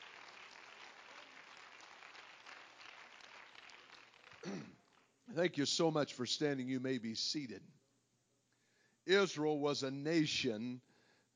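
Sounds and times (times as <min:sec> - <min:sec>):
audience clapping hands: 0:00.0 - 0:05.2
speech: 0:05.4 - 0:07.8, 0:09.0 - 0:11.3.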